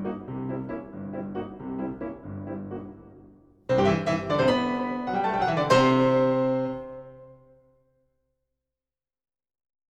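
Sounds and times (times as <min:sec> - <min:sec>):
lively piano waltz: 0:00.0 - 0:07.7.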